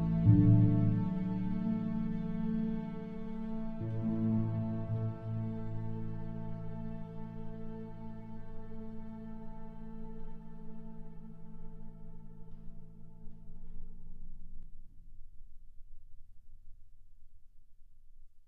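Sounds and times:
cello and strings: 0.0s - 13.4s.

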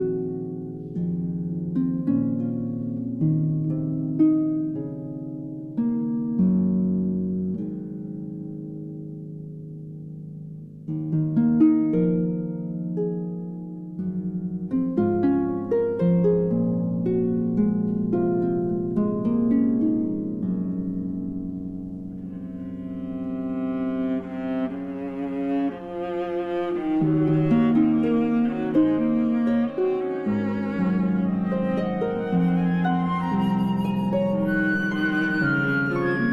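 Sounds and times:
harp concerto lullaby: 0.0s - 36.3s.

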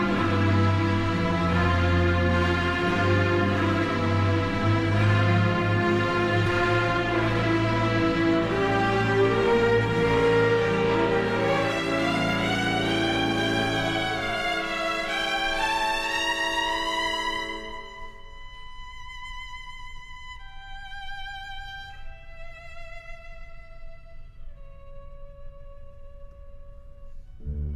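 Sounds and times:
orchestra playing: 0.0s - 18.8s, 27.4s - 27.7s
solo violin: 0.0s - 27.7s.

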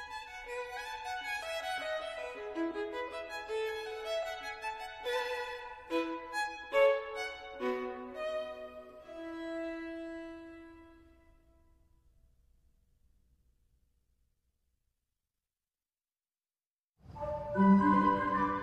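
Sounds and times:
violin: 0.0s - 11.5s, 17.1s - 18.6s.

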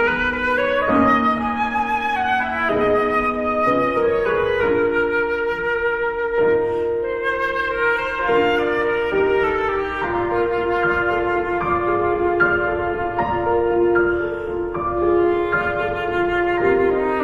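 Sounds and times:
flute playing a lullaby: 0.0s - 17.2s
piano playing a lullaby: 0.0s - 17.2s.

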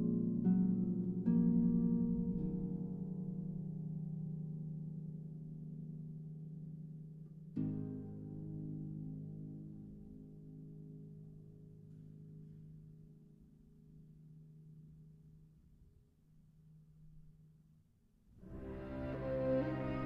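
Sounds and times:
harp concerto lullaby: 0.0s - 12.7s, 18.4s - 20.0s.

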